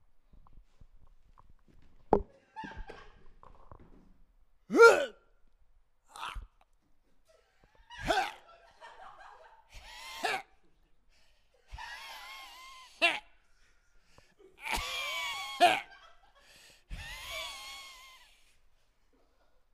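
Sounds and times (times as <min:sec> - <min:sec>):
laughter: 0:02.3 - 0:03.4, 0:07.2 - 0:10.9, 0:11.6 - 0:18.4
person imitating a dog dry heaving: 0:04.7 - 0:05.2, 0:06.1 - 0:06.6, 0:08.0 - 0:08.4.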